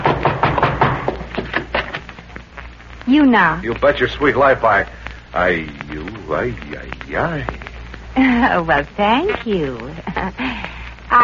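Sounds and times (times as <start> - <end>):
knuckles knocking on a door: 0.0 - 1.7
speech: 3.1 - 7.6, 8.2 - 11.2.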